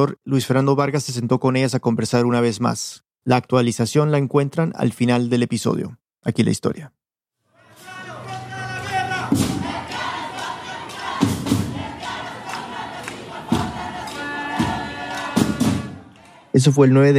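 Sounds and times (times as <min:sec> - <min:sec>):
speech: 0:00.0 - 0:07.0, 0:16.6 - 0:17.1
crowd of over 100 people chanting slogans: 0:07.5 - 0:16.6
heavy rhythmic thumps: 0:08.8 - 0:16.3.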